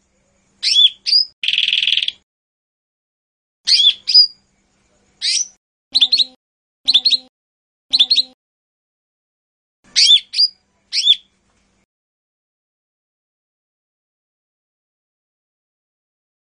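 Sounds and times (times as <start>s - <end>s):
Lesser green leafbird song with chirps and buzzy trills: 0.0s - 2.2s, 3.7s - 7.3s, 7.9s - 8.4s, 9.9s - 11.8s.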